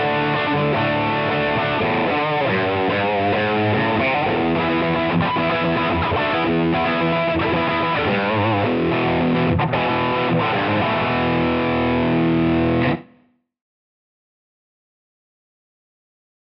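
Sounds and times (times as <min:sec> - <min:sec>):
guitar rhythm through amplifier: 0:00.0 - 0:13.2.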